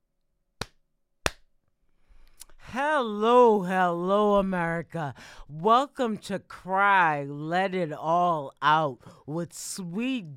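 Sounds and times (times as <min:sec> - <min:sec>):
single hand clap to start recording: 0:00.6 - 0:01.5
speech: 0:02.7 - 0:10.3.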